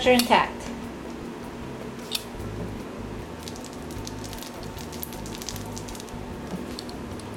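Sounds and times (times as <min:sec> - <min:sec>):
low steady hum: 0:00.0 - 0:07.3
tool pressing holes into wax honeycomb during honey harvesting: 0:03.2 - 0:07.3.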